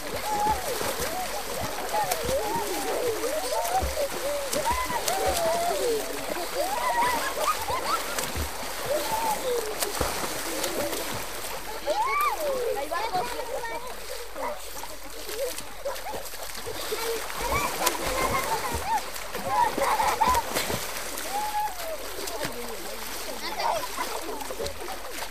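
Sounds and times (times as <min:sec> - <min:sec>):
Venezuelan children laughing: 0:00.0 - 0:25.2.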